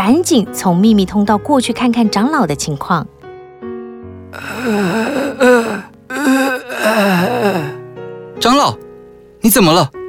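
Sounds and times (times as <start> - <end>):
speech: 0.0 - 3.2, 4.3 - 5.6, 6.2 - 7.7, 9.4 - 10.0
old man's weak moaning cry of pain: 4.4 - 7.8.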